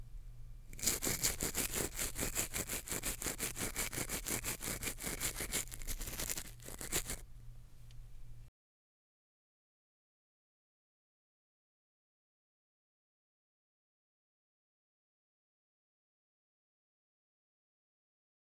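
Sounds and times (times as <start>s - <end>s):
teeth brushing: 0.7s - 7.2s.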